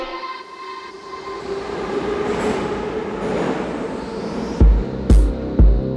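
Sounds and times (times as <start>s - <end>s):
metro train clattering at Derzhprom station: 1.2s - 5.6s.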